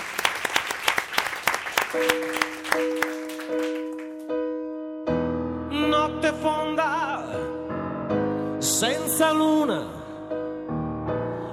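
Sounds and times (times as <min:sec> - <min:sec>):
audience applause: 0:00.0 - 0:04.3
sustained piano notes: 0:01.8 - 0:11.5
speech: 0:01.9 - 0:03.0, 0:08.8 - 0:10.0.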